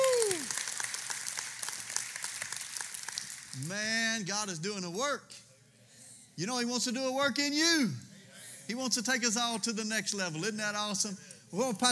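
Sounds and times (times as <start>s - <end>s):
audience hand clapping: 0.0s - 3.8s
speech: 3.6s - 5.5s, 6.4s - 8.0s, 8.7s - 11.8s.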